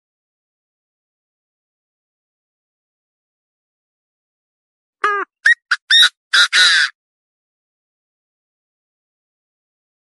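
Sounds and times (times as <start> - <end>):
partridge call: 5.0 - 6.9.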